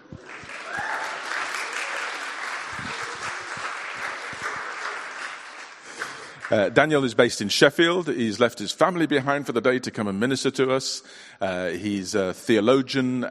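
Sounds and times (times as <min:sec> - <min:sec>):
church congregation applause at Leeds Vineyard welcoming a guest speaker: 0:00.0 - 0:07.3
speech: 0:06.5 - 0:13.2.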